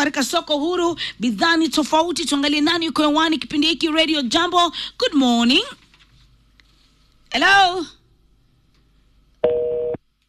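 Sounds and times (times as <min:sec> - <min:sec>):
speech: 0:00.0 - 0:05.8, 0:07.3 - 0:08.0
telephone busy signal on a radio call-in line: 0:09.4 - 0:10.0.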